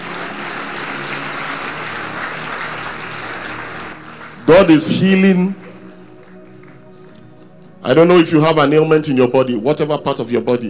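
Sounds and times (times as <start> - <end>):
audience hand clapping: 0.0 - 7.3
speech: 4.5 - 5.6, 7.9 - 10.6.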